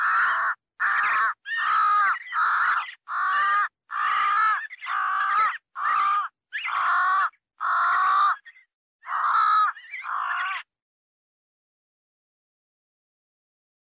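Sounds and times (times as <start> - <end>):
crow cawing: 0.0 - 8.5, 9.1 - 10.6.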